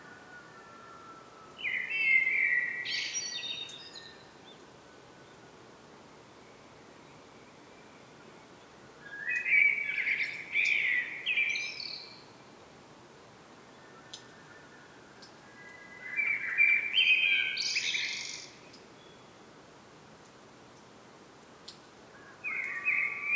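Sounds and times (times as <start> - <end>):
common blackbird song: 0.3 - 5.4, 7.0 - 12.4, 13.8 - 19.4, 22.2 - 23.3.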